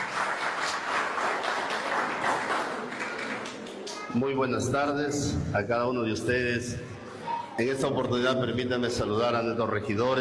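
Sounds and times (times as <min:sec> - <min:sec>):
crowd applauding: 0:00.0 - 0:04.1
speech: 0:04.1 - 0:07.0, 0:07.6 - 0:10.2.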